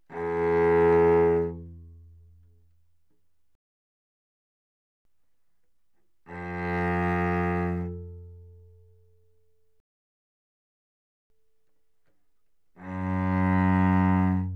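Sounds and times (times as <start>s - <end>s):
cello bowed arco on the C string: 0.1s - 2.5s, 6.2s - 9.2s, 12.7s - 14.5s.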